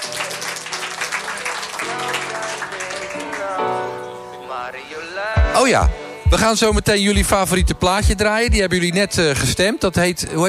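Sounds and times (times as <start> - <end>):
audience applause: 0.0 - 3.9
speech: 4.6 - 10.4.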